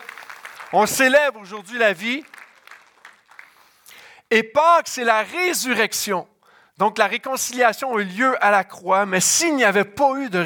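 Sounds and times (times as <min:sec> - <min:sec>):
audience applauding: 0:00.0 - 0:03.8
speech: 0:00.7 - 0:02.4, 0:04.3 - 0:10.4.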